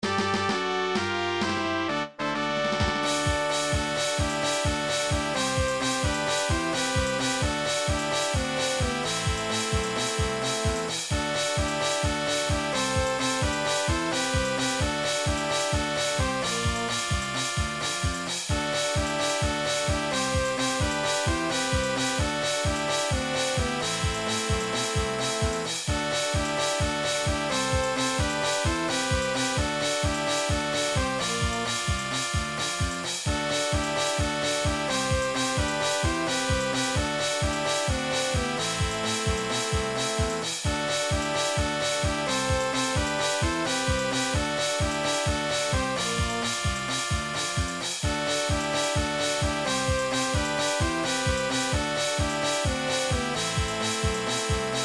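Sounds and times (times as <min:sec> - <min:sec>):
fanfare: 0:00.0 - 0:54.8.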